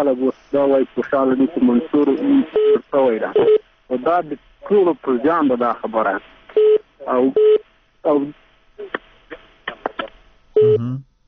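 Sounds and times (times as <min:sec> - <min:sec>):
speech: 0:00.0 - 0:06.4, 0:07.0 - 0:09.0, 0:10.6 - 0:11.1
telephone tone bursts after a caller's line dropped: 0:10.6 - 0:10.9.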